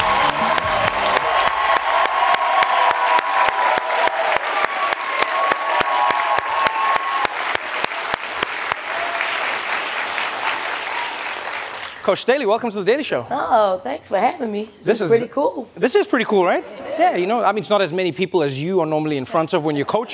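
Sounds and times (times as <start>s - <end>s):
studio audience whoops and shouts: 0.0s - 7.4s
late-night talk show studio audience clapping: 0.0s - 12.1s
speech: 12.1s - 20.1s.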